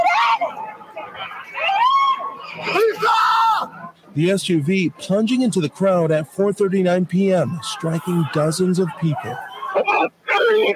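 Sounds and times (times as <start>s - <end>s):
people screaming for their loved ones in panic: 0.0s - 3.9s, 9.2s - 10.7s
speech: 4.2s - 10.7s.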